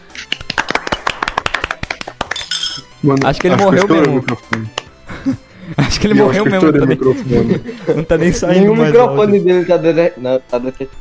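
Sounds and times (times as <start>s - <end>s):
round of applause: 0.2s - 4.9s
speech: 3.0s - 10.9s
laughter: 3.3s - 9.7s.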